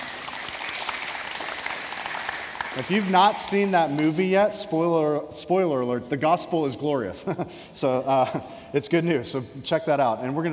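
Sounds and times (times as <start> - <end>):
audience clapping: 0.0 - 4.2
speech: 2.8 - 10.5.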